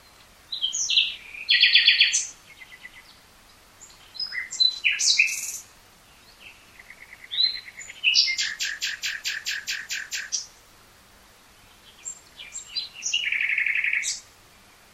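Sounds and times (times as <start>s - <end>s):
common nightingale singing: 0.0s - 10.6s, 11.5s - 14.9s.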